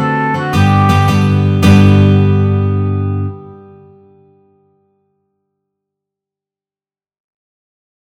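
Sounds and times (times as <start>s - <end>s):
guitar playing: 0.0s - 4.8s.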